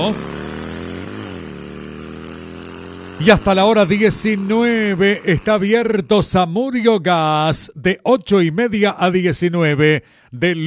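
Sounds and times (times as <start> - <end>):
speech: 0.0 - 0.4, 3.2 - 10.6
new motorcycle engine running: 0.0 - 6.5.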